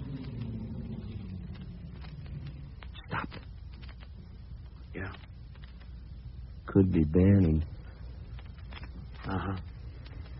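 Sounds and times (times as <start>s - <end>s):
car arriving: 0.0s - 2.9s
speech: 6.8s - 7.7s, 9.3s - 9.7s.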